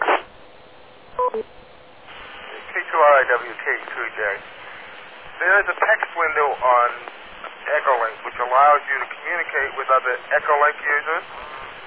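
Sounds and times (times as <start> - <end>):
low steady hiss: 0.0 - 11.8
touch-tone dialing beeps from a phone keypad sending call letters over Echolink: 1.2 - 1.4
speech: 1.3 - 1.6, 3.0 - 4.6, 5.4 - 7.1, 7.7 - 11.4.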